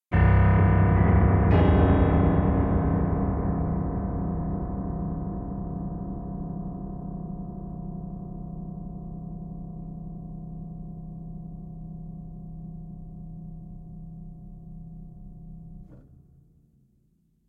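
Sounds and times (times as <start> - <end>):
piano notes: 0.1 - 11.8.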